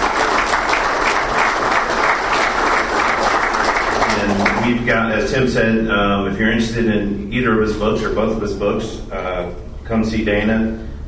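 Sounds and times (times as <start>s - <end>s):
audience applause: 0.0s - 4.9s
speech: 4.8s - 10.9s.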